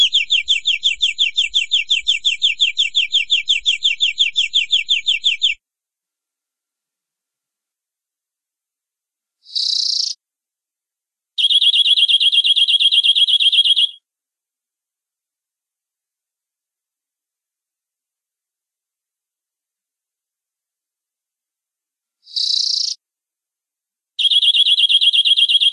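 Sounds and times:
canary rolling trill song: 0.0s - 5.6s, 9.5s - 10.2s, 11.4s - 14.0s, 22.3s - 23.0s, 24.2s - 25.7s.

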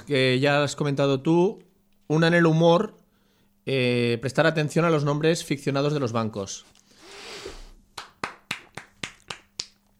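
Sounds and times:
speech: 0.0s - 3.0s, 3.7s - 6.8s
applause: 8.0s - 9.8s.

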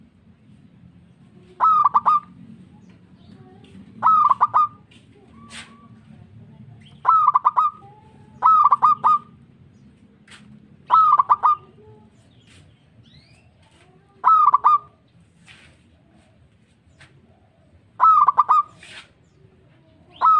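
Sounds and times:
zebra dove cooing: 1.3s - 2.6s, 3.3s - 6.2s, 7.0s - 9.4s, 10.9s - 12.1s, 14.2s - 15.0s, 17.2s - 20.3s.

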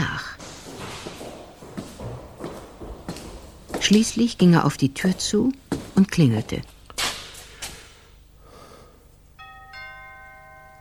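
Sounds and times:
footsteps running down a staircase: 0.0s - 7.9s
speech: 3.8s - 6.7s.

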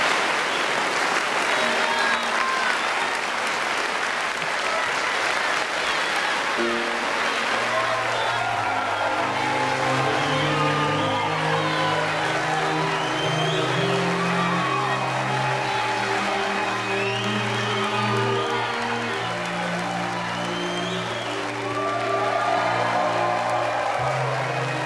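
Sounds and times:
theatre audience standing and applauding after a stage play: 0.0s - 24.8s
sustained musical tones: 6.6s - 24.8s.

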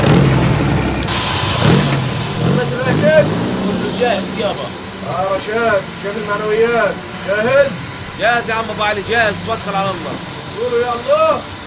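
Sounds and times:
car engine running: 0.0s - 11.6s
speech: 3.2s - 11.6s.

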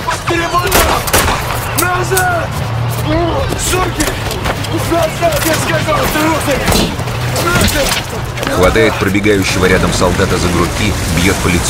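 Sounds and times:
speech: 0.3s - 0.8s, 2.0s - 11.6s
gunfire from a captain shooting into the air in a war film: 0.7s - 1.8s.

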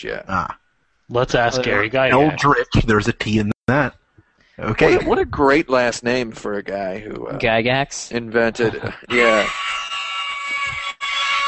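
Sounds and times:
speech: 0.0s - 4.0s, 4.6s - 9.9s
laughter: 1.2s - 3.0s, 4.6s - 7.4s, 8.2s - 10.1s
loud harsh game show buzzer: 9.1s - 11.4s.

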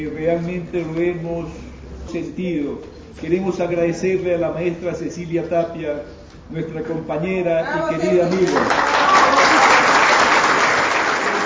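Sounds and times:
speech: 0.0s - 9.2s
audience applause after a chamber orchestra concert: 8.4s - 11.4s.

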